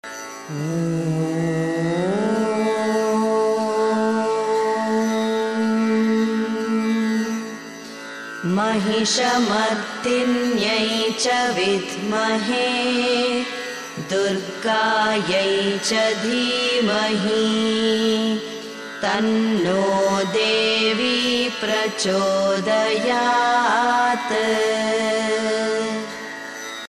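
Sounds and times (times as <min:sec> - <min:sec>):
chanted mantra: 0:00.5 - 0:07.6, 0:08.4 - 0:26.2.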